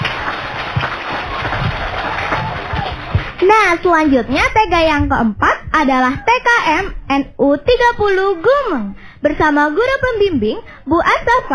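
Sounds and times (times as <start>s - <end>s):
audience clapping: 0.0s - 5.1s
speech: 3.4s - 11.5s.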